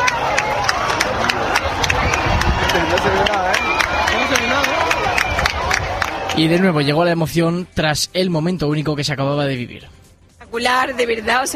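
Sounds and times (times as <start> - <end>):
crowd applauding: 0.0 - 6.9
speech: 6.4 - 11.5.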